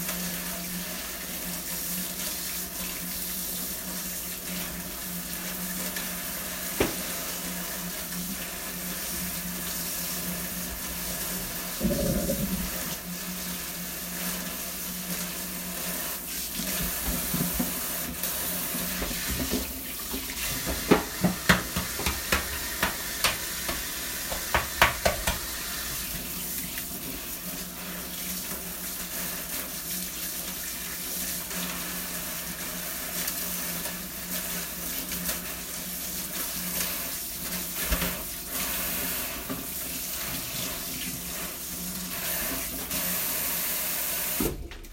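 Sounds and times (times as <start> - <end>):
kitchen tap water running: 0.0 - 44.9.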